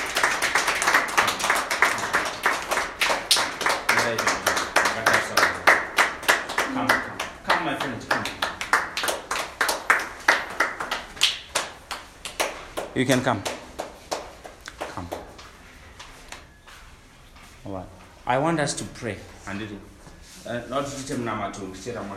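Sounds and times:
audience clapping: 0.0 - 16.1
speech: 4.1 - 4.4, 13.0 - 13.6, 17.7 - 22.1.

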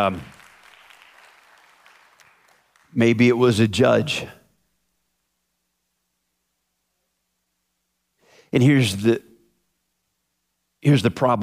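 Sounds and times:
speech: 0.0 - 0.4, 2.9 - 4.4, 8.5 - 9.3, 10.8 - 11.4
audience applause: 0.0 - 3.0.

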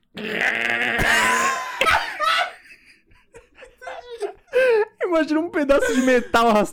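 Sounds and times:
person imitating an agonized snore: 0.1 - 1.6
laughter: 1.0 - 5.1
speech: 5.2 - 6.7.

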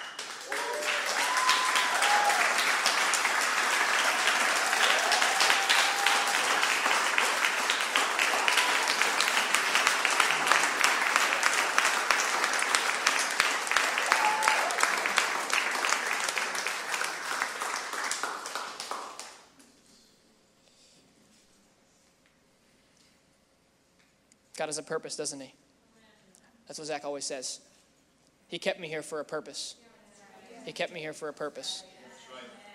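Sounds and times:
audience applause: 0.0 - 19.5
speech: 24.6 - 25.6, 26.8 - 27.7, 28.5 - 29.8, 30.6 - 31.9.

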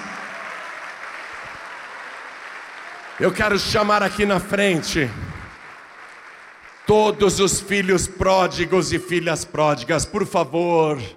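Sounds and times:
audience applause: 0.0 - 7.3
speech: 3.2 - 5.3, 6.9 - 11.1.

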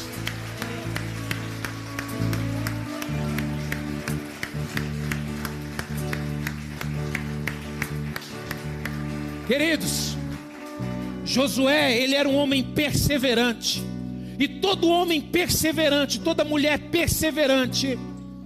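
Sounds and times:
audience applause: 0.0 - 12.2
speech: 9.5 - 10.2, 11.3 - 18.1.

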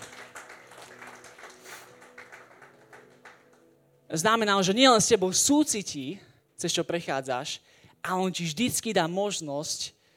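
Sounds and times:
audience applause: 0.0 - 3.7
speech: 4.1 - 10.0.

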